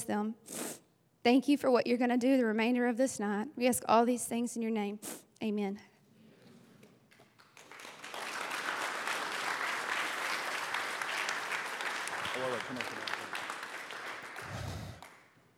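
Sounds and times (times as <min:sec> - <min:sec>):
speech: 0:00.0 - 0:00.6, 0:01.2 - 0:05.9, 0:12.6 - 0:13.0
audience applause: 0:07.1 - 0:15.4.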